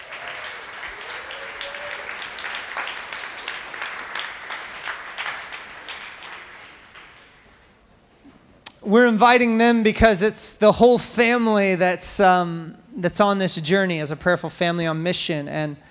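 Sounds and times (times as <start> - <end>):
audience applause: 0.0 - 7.5
speech: 8.9 - 15.8.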